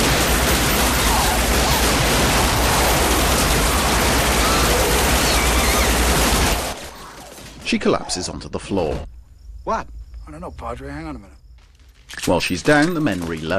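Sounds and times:
gunfire sound effect of several men firing a rapid barrage in a room: 0:00.0 - 0:07.6
speech: 0:07.7 - 0:11.4, 0:12.1 - 0:13.5.

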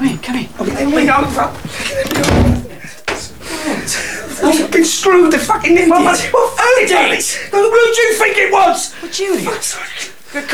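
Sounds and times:
speech: 0:00.0 - 0:02.4, 0:03.9 - 0:10.5
laughter: 0:00.0 - 0:10.5
door being unlocked and opened: 0:00.7 - 0:03.4
door latch knock: 0:01.2 - 0:03.4.

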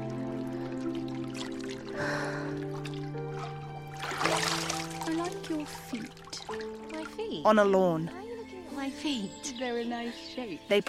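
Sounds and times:
head rising out of bathtub water: 0:00.0 - 0:06.9
speech: 0:07.4 - 0:08.2, 0:08.8 - 0:10.8.

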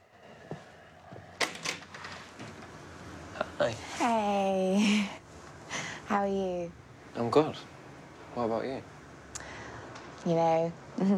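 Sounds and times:
door being opened: 0:01.4 - 0:02.6
speech: 0:03.6 - 0:05.2, 0:06.1 - 0:07.7, 0:08.4 - 0:08.9, 0:10.2 - 0:11.1.

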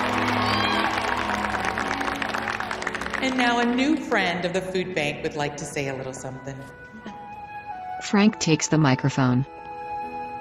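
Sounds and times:
crowd applauding: 0:00.0 - 0:04.3
speech: 0:03.2 - 0:06.8, 0:08.1 - 0:09.6.

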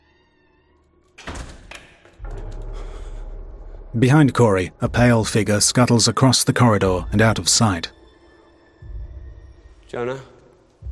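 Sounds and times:
glass door leading outside swinging shut: 0:01.2 - 0:02.3
low rumble: 0:02.2 - 0:05.8
speech: 0:03.9 - 0:08.0, 0:09.9 - 0:10.3.

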